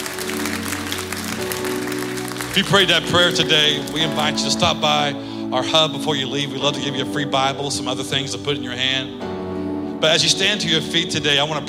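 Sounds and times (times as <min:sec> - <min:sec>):
audience applause: 0:00.0 - 0:04.4
speech: 0:02.6 - 0:09.4, 0:10.0 - 0:11.6.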